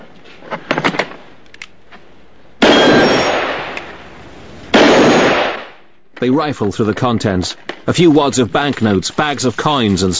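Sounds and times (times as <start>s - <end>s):
gunshots shooting the lock off a cash box: 2.6s - 4.0s, 4.7s - 5.8s
speech: 6.2s - 10.1s.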